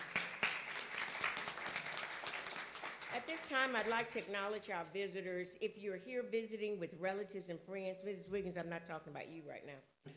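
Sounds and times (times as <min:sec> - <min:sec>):
crowd applause: 0:00.0 - 0:04.0
speech: 0:03.2 - 0:10.1.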